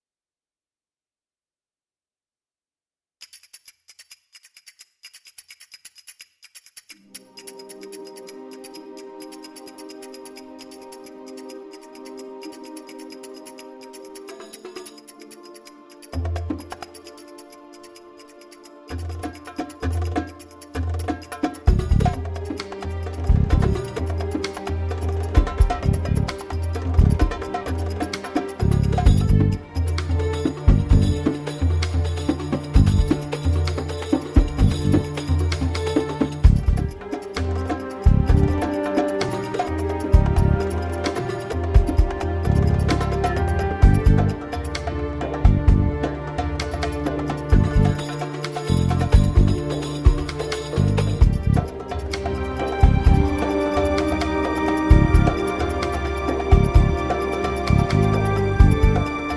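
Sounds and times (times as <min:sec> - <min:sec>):
drums: 0:19.0 - 0:59.3.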